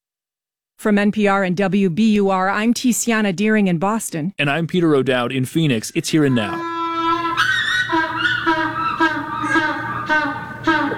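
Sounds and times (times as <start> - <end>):
speech: 0.8 - 6.8
hungry African penguin braying at the New England Aquarium in Boston: 6.3 - 10.9.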